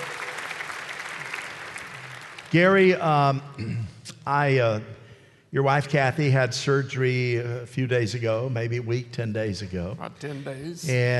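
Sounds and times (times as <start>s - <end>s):
audience clapping: 0.0s - 3.3s
speech: 2.5s - 11.1s.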